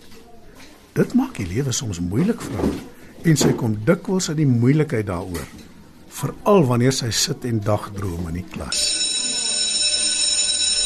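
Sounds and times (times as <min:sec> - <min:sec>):
speech: 0:01.0 - 0:08.9
school bell ringing: 0:08.7 - 0:10.8.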